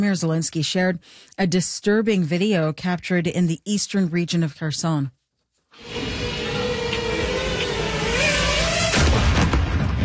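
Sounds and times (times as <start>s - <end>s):
speech: 0.0s - 6.0s
exploding drone attack: 5.8s - 10.0s.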